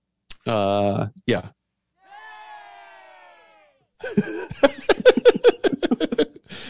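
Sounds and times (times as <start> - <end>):
speech: 0.5 - 1.6, 4.1 - 4.4
crowd cheering stinger: 2.0 - 3.9
laughter: 4.0 - 6.6.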